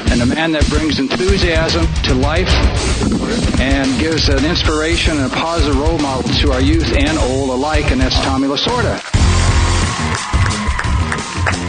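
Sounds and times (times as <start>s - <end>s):
speech: 0.2s - 9.1s
low droning rumble: 1.7s - 8.4s
audience applause and cheering as a baseball icon is introduced: 3.0s - 11.6s.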